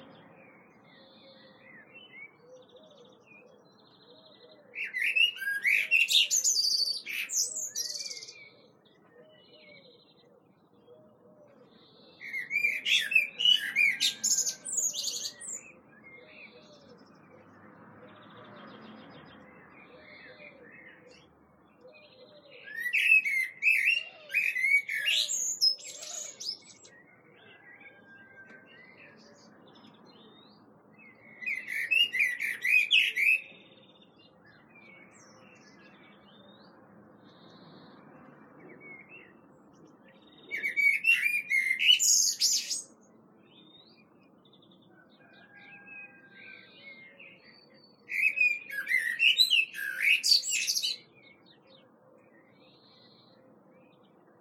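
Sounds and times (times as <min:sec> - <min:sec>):
common blackbird singing: 0:00.0 - 0:54.4.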